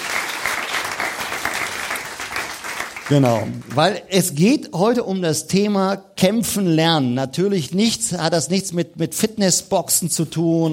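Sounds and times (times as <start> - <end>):
audience applause: 0.0 - 3.8
speech: 3.1 - 10.7.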